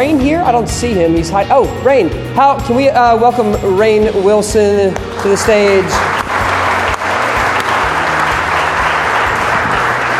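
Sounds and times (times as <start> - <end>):
speech: 0.1 - 6.3
audience applause and clapping: 5.2 - 10.1.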